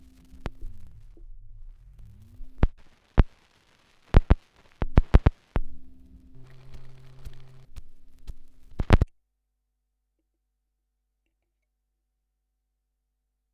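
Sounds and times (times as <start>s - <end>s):
78rpm record surface noise: 0.0s - 9.1s.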